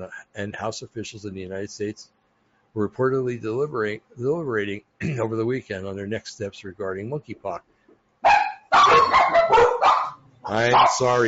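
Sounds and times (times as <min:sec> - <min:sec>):
speech: 0:00.0 - 0:02.2, 0:02.8 - 0:07.7, 0:10.5 - 0:11.2
dogs barking behind a door: 0:08.2 - 0:11.2.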